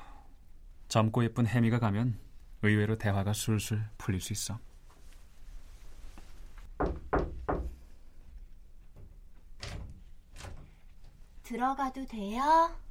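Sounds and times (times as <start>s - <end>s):
speech: 0.9s - 4.7s, 11.5s - 12.8s
bedroom door opening quietly: 8.9s - 11.2s.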